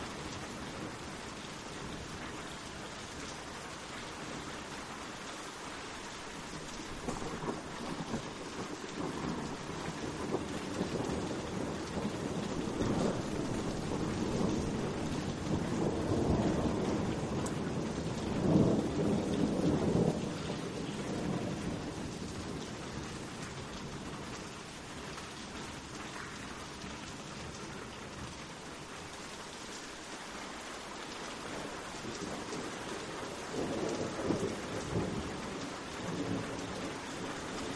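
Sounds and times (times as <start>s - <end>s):
relaxing rain: 0.0s - 37.7s
thunder: 7.0s - 23.6s, 31.5s - 37.7s.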